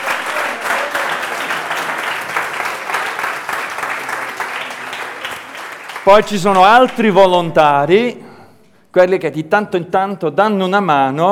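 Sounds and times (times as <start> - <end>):
audience applause: 0.0 - 7.4
speech: 6.0 - 8.2, 8.9 - 11.3.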